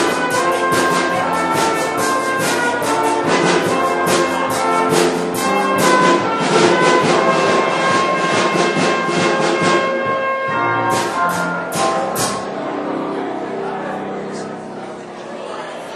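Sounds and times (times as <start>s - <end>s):
trumpet: 0.0s - 12.7s
drums: 0.0s - 12.8s
piano: 0.0s - 15.9s.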